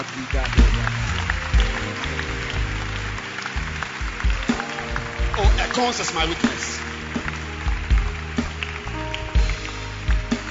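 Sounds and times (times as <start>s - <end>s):
audience clapping hands: 0.0s - 10.5s
speech: 5.8s - 6.9s.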